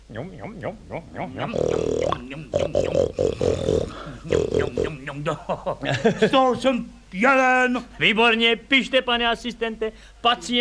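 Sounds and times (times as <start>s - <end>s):
man imitating pig grunts and squeals: 0.1s - 5.3s
speech: 0.1s - 10.5s
laughter: 1.4s - 3.2s, 3.9s - 6.5s.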